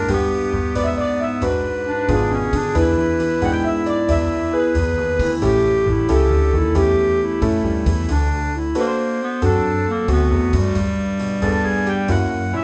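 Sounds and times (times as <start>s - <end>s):
jazzy blues music: 0.0s - 12.6s.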